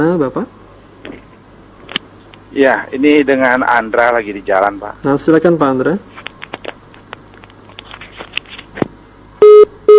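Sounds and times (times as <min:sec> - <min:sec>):
speech: 0:00.0 - 0:00.6, 0:02.6 - 0:06.1
telephone line tone after a call is cut off: 0:09.4 - 0:09.9.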